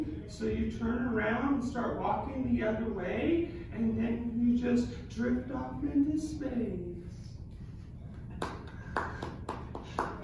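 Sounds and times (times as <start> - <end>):
speech: 0.3 - 6.9
single person clapping: 8.4 - 10.2.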